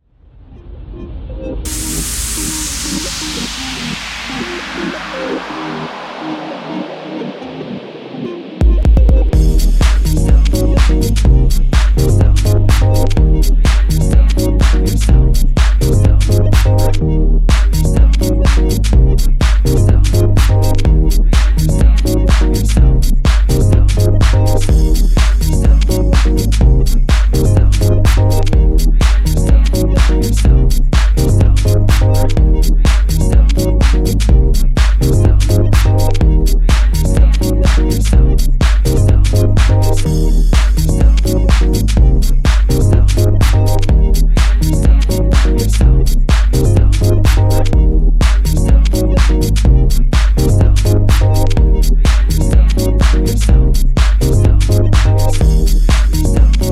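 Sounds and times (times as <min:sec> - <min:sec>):
instrumental remix: 0:00.3 - 0:56.7.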